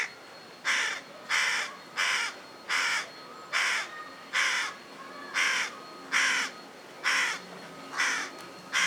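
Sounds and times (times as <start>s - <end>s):
Carrion crow cawing, Corvus corone: 0.6s - 8.8s.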